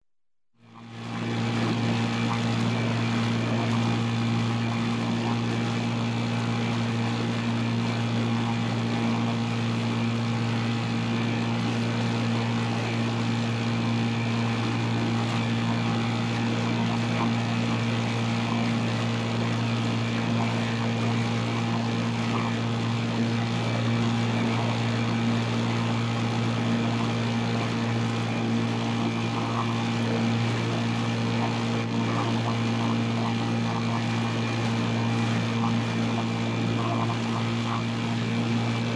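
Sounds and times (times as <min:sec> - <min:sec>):
6 hp motorboat moving at constant speed: 0:00.6 - 0:38.9.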